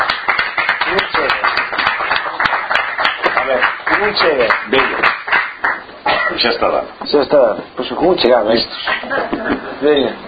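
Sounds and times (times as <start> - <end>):
audience applause: 0.0 - 5.9
speech: 4.0 - 5.1, 6.4 - 10.2
laughter: 8.8 - 9.8.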